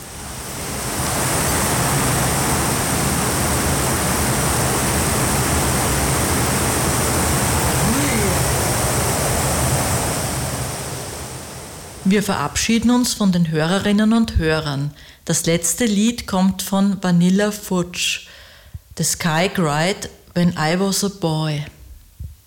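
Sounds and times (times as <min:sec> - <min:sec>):
heavy rain on the Barra peninsula: 0:00.0 - 0:12.1
speech: 0:12.1 - 0:18.4, 0:19.0 - 0:21.8.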